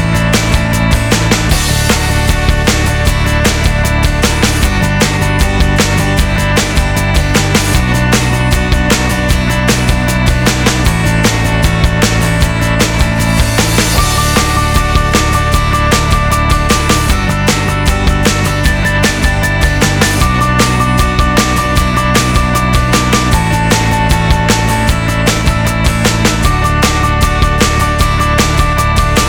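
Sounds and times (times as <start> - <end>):
inspirational happy upbeat corporate acoustic guitar music: 0.0 - 29.2.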